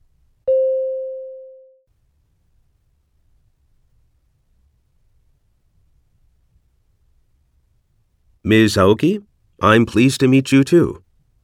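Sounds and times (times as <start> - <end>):
single mid-pitched beep: 0.5 - 1.8
speech: 8.5 - 11.0.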